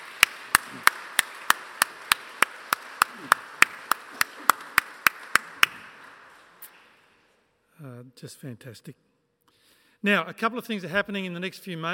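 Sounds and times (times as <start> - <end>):
audience applauding in church: 0.0 - 7.0
speech: 8.2 - 9.1, 10.0 - 11.9.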